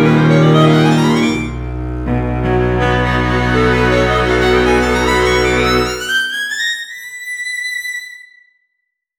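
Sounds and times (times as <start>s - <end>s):
fanfare: 0.0s - 6.3s.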